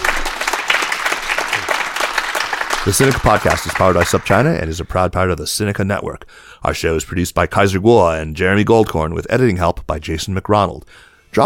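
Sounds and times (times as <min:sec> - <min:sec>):
audience applauding: 0:00.0 - 0:04.6
speech: 0:02.8 - 0:11.4.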